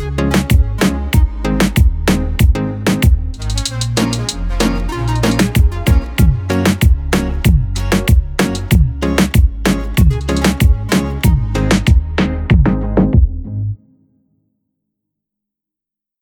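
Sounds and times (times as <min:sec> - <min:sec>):
reggaeton music: 0:00.0 - 0:13.6.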